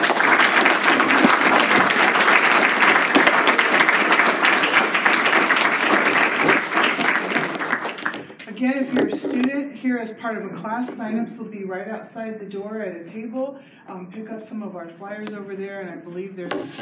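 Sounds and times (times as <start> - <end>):
audience clapping: 0.0 - 9.2
speech: 9.9 - 16.8.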